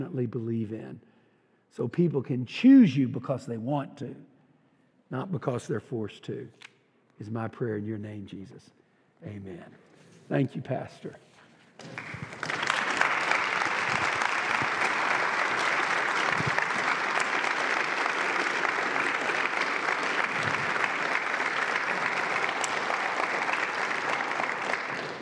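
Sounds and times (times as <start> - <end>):
speech: 0.0 - 4.3, 5.1 - 12.3
audience applause: 11.8 - 25.1.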